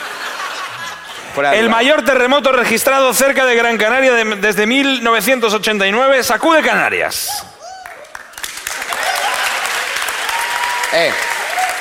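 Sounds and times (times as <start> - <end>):
laughter: 0.0 - 2.2, 8.8 - 10.1
speech: 1.4 - 7.5, 10.9 - 11.3
crowd clapping: 7.6 - 11.8.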